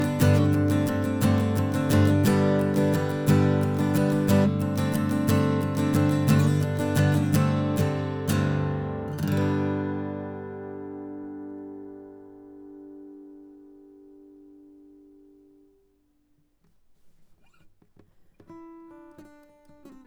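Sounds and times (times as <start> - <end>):
acoustic guitar stroke near the bridge: 0.0 - 14.3.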